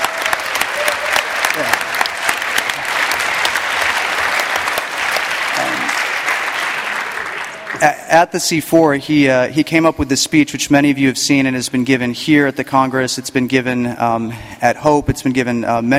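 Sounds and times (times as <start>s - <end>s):
audience applause: 0.0s - 7.8s
speech: 7.8s - 15.9s.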